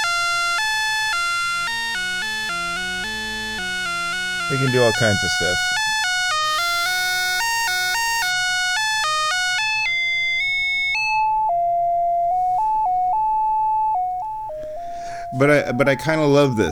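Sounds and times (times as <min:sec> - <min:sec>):
undirected melodic whistling: 0:00.0 - 0:16.0
speech: 0:04.5 - 0:05.8, 0:15.4 - 0:16.7.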